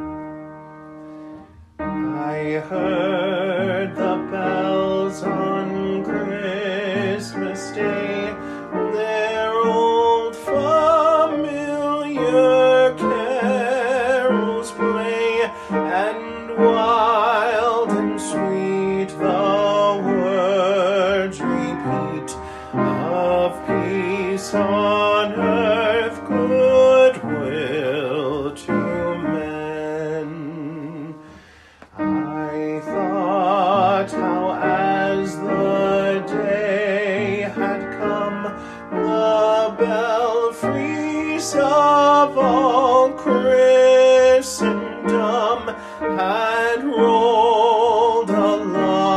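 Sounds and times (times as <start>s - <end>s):
Christmas carol vocal: 1.8s - 49.1s.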